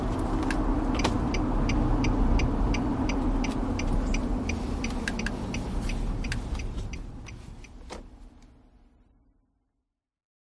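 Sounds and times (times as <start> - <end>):
Nissan Patrol pulling away: 0.0 - 8.4
Nissan Patrol turn signal ticking: 0.0 - 8.6.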